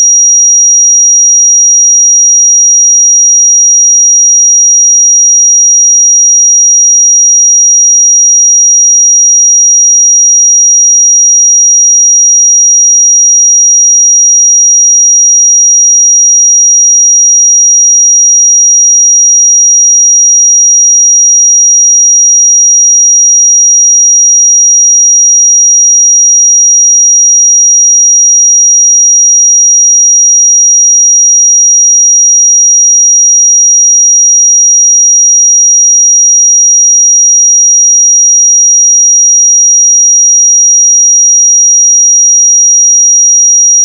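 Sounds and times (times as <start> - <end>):
5731 Hz pure sine tone: 0.0 - 43.8.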